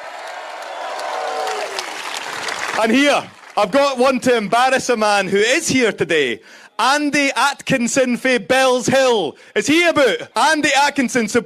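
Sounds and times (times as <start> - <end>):
cheers and drawn-out shout: 0.0 - 4.5
crowd applauding: 0.0 - 5.0
speech: 2.8 - 11.4.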